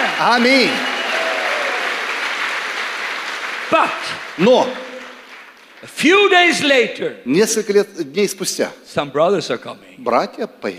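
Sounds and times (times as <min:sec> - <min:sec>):
church congregation applause during a conference service: 0:00.0 - 0:06.8
speech: 0:00.2 - 0:00.9, 0:03.7 - 0:04.8, 0:05.8 - 0:10.7.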